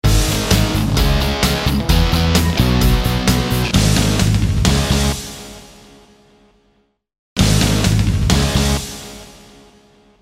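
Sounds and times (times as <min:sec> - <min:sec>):
rock music: 0:00.0 - 0:05.6, 0:07.4 - 0:09.2.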